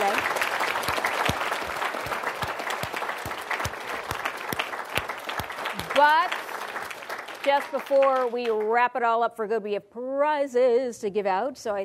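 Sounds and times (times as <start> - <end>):
round of applause for panelists: 0.0 - 8.7
speech: 6.0 - 6.4, 7.4 - 11.8.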